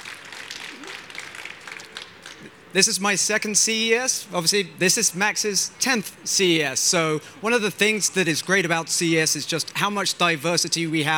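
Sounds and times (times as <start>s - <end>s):
crowd clapping: 0.0s - 3.0s
speech: 2.4s - 11.1s.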